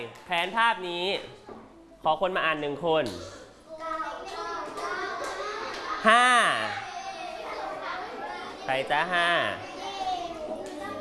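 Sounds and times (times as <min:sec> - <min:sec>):
speech: 0:00.0 - 0:01.4, 0:02.0 - 0:03.4, 0:06.0 - 0:06.8, 0:08.7 - 0:09.7
children chattering: 0:03.2 - 0:11.0
children clapping: 0:04.2 - 0:06.0, 0:10.1 - 0:11.0.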